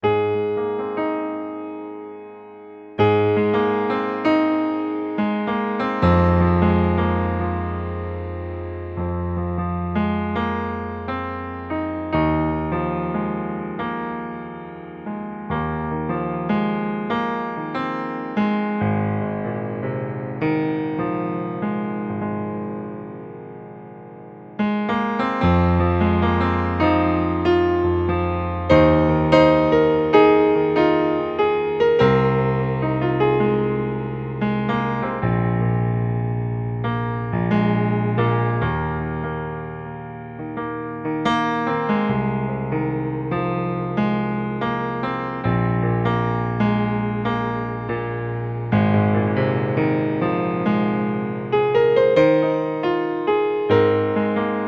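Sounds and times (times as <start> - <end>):
melancholic music piece in G: 0.0 - 54.6.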